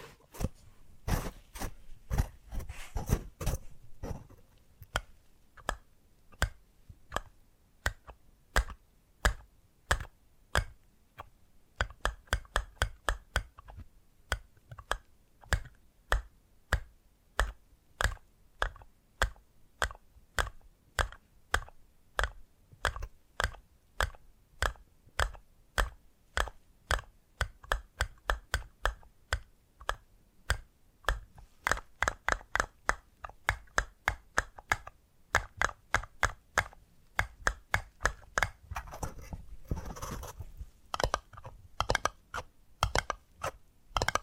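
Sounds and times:
scratching: 0:00.0 - 0:05.0, 0:38.0 - 0:44.2
tapping and clicking: 0:03.0 - 0:44.2.

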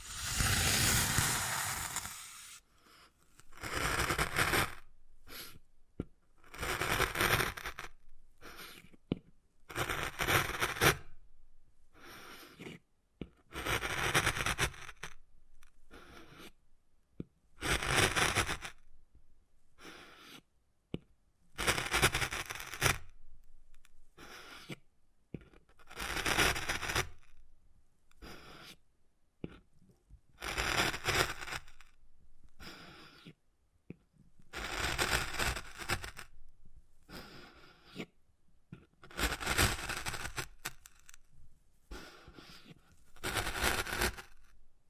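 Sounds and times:
wood carving scraping: 0:00.0 - 0:02.6, 0:03.4 - 0:05.6, 0:06.5 - 0:08.9, 0:09.7 - 0:11.1, 0:13.5 - 0:15.2, 0:15.9 - 0:16.6, 0:17.6 - 0:18.8, 0:21.6 - 0:23.1, 0:25.5 - 0:27.4, 0:28.2 - 0:28.8, 0:30.4 - 0:32.0, 0:34.5 - 0:36.4, 0:39.0 - 0:41.2, 0:41.9 - 0:44.5.

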